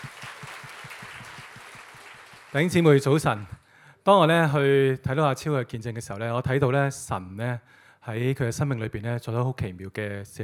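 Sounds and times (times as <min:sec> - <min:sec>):
church congregation applause during a service: 0:00.0 - 0:03.6
speech: 0:02.5 - 0:10.4.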